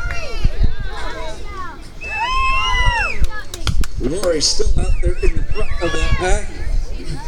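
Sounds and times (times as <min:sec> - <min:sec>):
low gusty rumbles of wind: 0:00.0 - 0:07.2
family spectators cheering and shouting at a race: 0:02.0 - 0:06.7
speech: 0:04.0 - 0:07.2.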